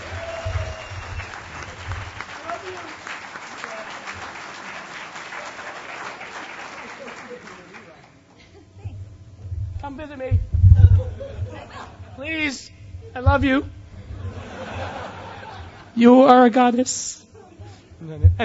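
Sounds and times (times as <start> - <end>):
crowd applauding: 0.0 - 8.2
laughter: 6.7 - 9.0, 10.9 - 12.2, 14.0 - 16.0
speech: 9.9 - 10.5, 11.7 - 13.8, 16.0 - 17.2.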